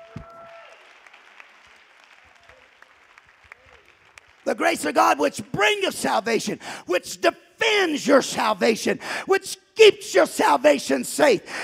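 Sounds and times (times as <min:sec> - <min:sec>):
audience clapping: 0:00.0 - 0:05.5
speech: 0:04.5 - 0:11.6.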